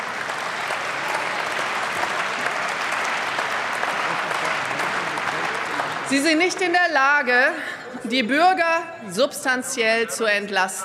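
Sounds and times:
crowd applause: 0.0 - 6.8
laughter: 3.7 - 6.1, 7.4 - 8.5
speech: 6.1 - 10.8.

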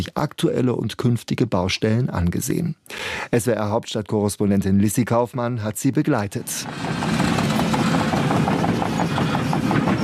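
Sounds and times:
speech: 0.0 - 7.2
excavators rolling on a construction site at a primary school: 6.4 - 10.0.

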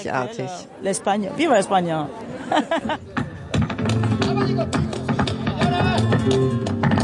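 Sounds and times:
speech: 0.0 - 3.2, 6.2 - 6.7
lively crowd murmuring: 0.0 - 7.0
laughter: 2.2 - 3.5
flamenco performance with footwork taps: 3.2 - 7.0.

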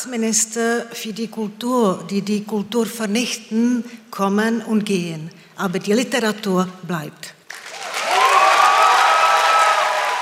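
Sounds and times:
speech: 0.0 - 7.4
audience cheering and applauding after a speech: 7.5 - 10.2.

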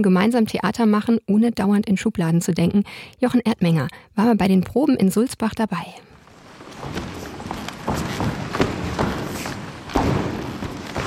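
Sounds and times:
speech: 0.0 - 6.1, 7.9 - 8.3
ensemble stomping across creaky wooden floor: 6.1 - 11.0.

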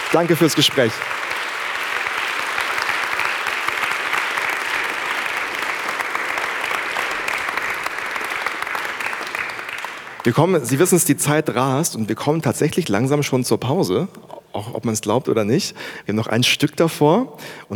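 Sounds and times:
audience applause: 0.0 - 10.3
speech: 0.1 - 1.3, 10.2 - 17.7.

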